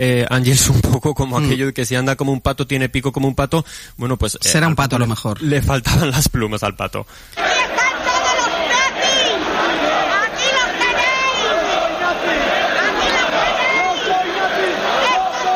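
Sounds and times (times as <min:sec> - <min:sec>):
speech: 0:00.0 - 0:07.8
crowd of football ultras chanting and shouting: 0:07.4 - 0:15.5.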